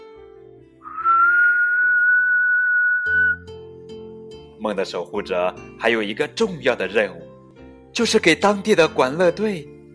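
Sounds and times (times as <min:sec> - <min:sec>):
whistle blown urgently: 0:00.9 - 0:03.4
speech: 0:04.6 - 0:07.2, 0:07.9 - 0:09.7.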